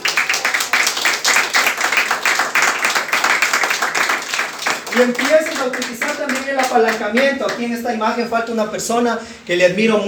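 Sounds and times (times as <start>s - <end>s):
audience applause: 0.0s - 7.3s
speech: 5.0s - 10.0s.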